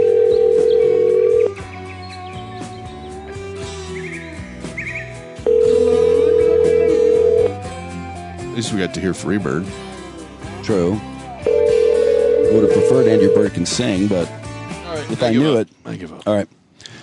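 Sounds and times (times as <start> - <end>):
phone call ringing unanswered: 0.0 - 1.6, 5.4 - 7.7, 11.4 - 13.6
speech: 8.7 - 9.9, 10.7 - 11.1, 12.5 - 14.4, 15.0 - 16.6.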